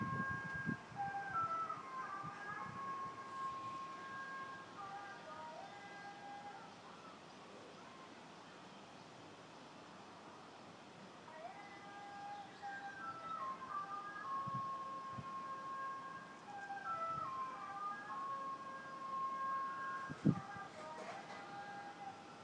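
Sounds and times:
garden sounds: 0.0 - 22.4.

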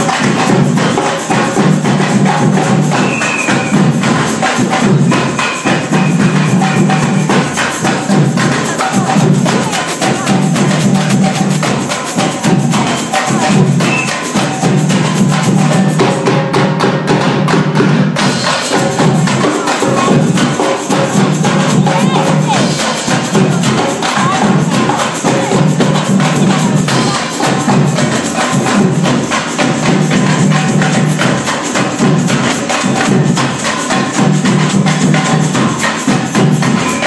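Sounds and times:
samba band playing: 0.0 - 37.0.

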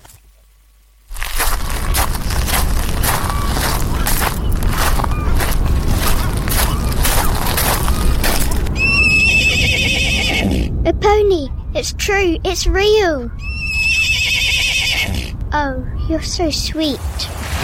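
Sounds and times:
rumbling background: 0.0 - 17.5
pony neighing: 8.8 - 10.8, 13.4 - 15.4
speech: 11.1 - 13.5, 15.6 - 17.3.

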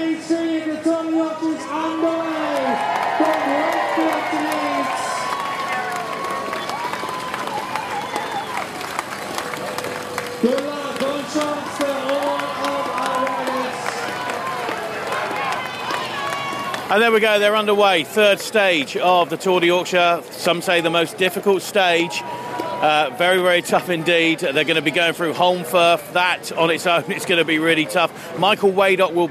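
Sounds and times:
spectators cheering at the Tour de Yorkshire in Wakefield: 0.0 - 25.9
scattered clapping: 2.4 - 18.6
speech: 16.9 - 29.2.

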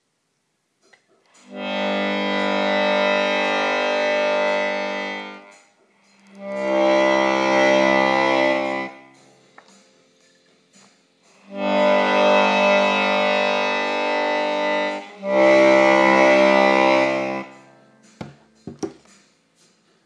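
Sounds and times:
accordion: 1.4 - 9.2, 11.4 - 17.8.

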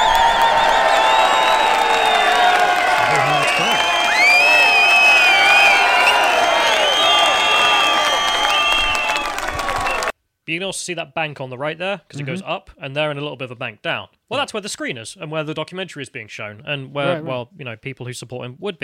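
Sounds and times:
large crowd cheering and shouting at outdoor event: 0.0 - 10.1
speech: 10.6 - 18.8.

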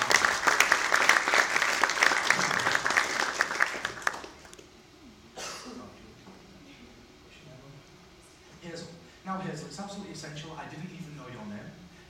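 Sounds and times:
audience applause: 0.0 - 4.6
speech: 9.8 - 11.0.

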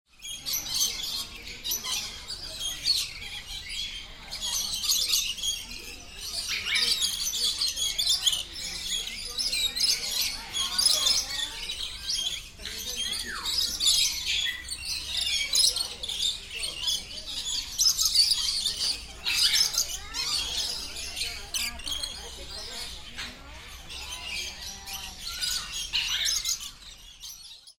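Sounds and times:
birds in a bird park in Malaysia: 0.1 - 27.7.

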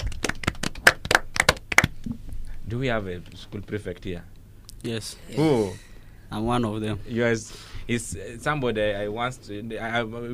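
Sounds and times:
classroom of pupils clapping for a student: 0.0 - 2.0
speech: 2.7 - 10.3.

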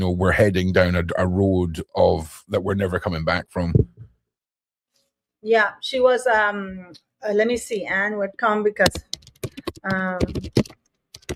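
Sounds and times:
speech: 0.0 - 3.9, 5.4 - 9.1, 9.8 - 10.7
typing on a computer keyboard: 8.9 - 11.3.

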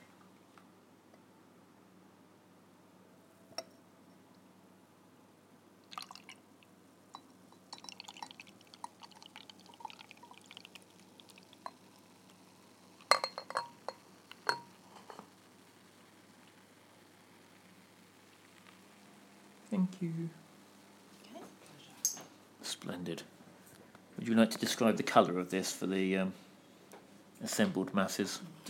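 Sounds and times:
beer being poured into a glass: 5.8 - 19.2
glassy clinks: 7.1 - 9.9, 13.1 - 14.7
speech: 19.7 - 20.4, 22.8 - 23.3, 24.3 - 26.4, 27.4 - 28.6.

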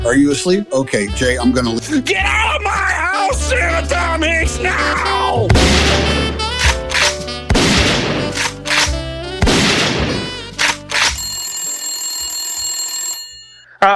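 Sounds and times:
speech: 0.1 - 6.2
Glock pistol shots fired into a snowman: 7.0 - 11.1
bright sustained ringing tone: 11.1 - 13.7.

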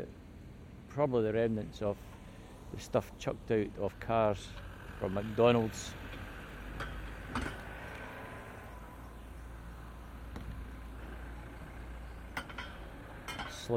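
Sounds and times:
vans arriving with steady low engine rumble: 0.0 - 13.7
speech: 1.0 - 6.1.

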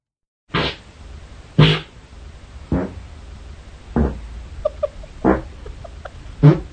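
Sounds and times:
farting recorded overnight by sleep app: 1.6 - 1.9, 2.7 - 3.0, 3.9 - 4.2, 5.2 - 5.5, 6.4 - 6.7
laughter: 4.6 - 6.3.

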